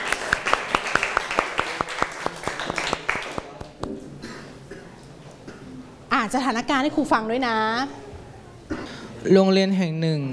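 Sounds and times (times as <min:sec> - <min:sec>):
classroom applause for a student group: 0:00.0 - 0:03.9
speech: 0:06.2 - 0:08.0, 0:09.2 - 0:10.3.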